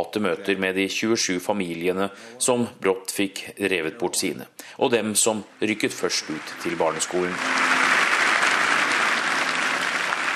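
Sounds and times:
speech: 0.0 - 7.8
audience applause in an auditorium: 5.8 - 10.3.

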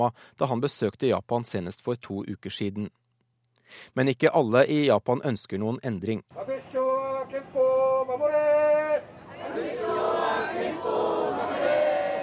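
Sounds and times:
speech: 0.0 - 3.0, 3.7 - 6.8
demonstrators chanting at a protest: 8.2 - 12.2.

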